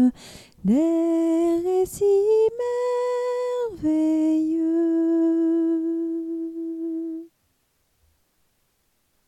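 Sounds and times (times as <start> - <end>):
soprano singing a lullaby: 0.0 - 7.3.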